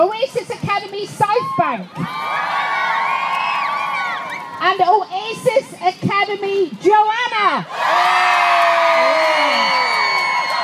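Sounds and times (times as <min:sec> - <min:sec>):
speech: 0:00.0 - 0:02.6, 0:04.6 - 0:08.2
crowd cheering: 0:01.4 - 0:04.6, 0:07.7 - 0:10.6.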